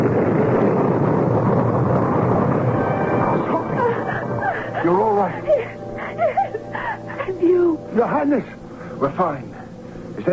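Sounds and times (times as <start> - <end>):
bomb explosion sound effect in a radio drama: 0.0 - 5.4
laughter: 3.5 - 7.4
speech: 8.0 - 9.5, 10.2 - 10.3.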